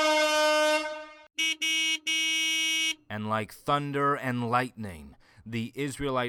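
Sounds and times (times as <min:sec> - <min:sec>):
long loud brassy horn blast: 0:00.0 - 0:03.0
speech: 0:03.1 - 0:06.2.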